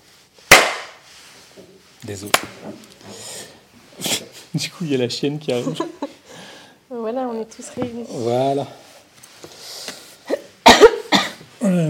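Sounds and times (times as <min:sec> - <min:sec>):
hand clap to sync recording: 0:00.5 - 0:01.0, 0:02.3 - 0:02.5
speech: 0:01.6 - 0:06.0, 0:07.2 - 0:08.8
laughter: 0:05.5 - 0:06.2.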